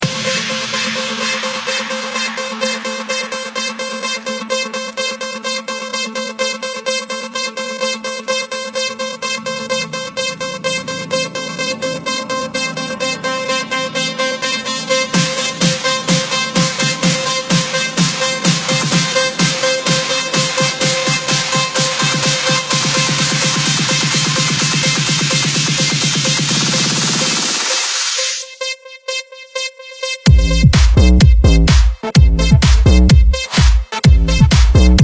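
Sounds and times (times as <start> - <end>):
electro music: 0.0 - 35.0.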